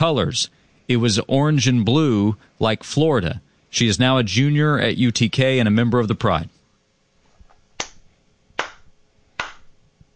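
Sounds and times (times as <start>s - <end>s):
speech: 0.0s - 6.6s
slow clap: 7.8s - 8.0s, 8.6s - 10.1s.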